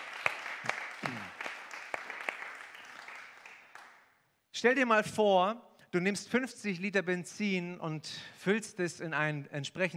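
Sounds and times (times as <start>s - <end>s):
audience applause: 0.0s - 4.0s
speech: 4.6s - 9.9s.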